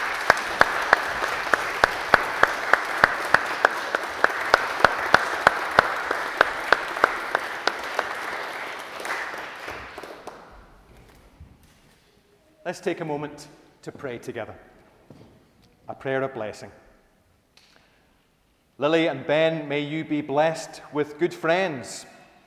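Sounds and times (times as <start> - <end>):
audience applause: 0.0 - 10.8
speech: 12.7 - 15.2, 15.9 - 16.8, 18.8 - 22.2.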